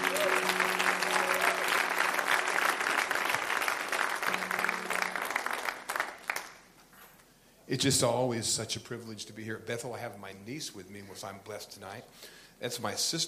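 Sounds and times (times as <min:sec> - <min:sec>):
church audience applause welcoming a pastor: 0:00.0 - 0:06.7
speech: 0:07.7 - 0:13.2.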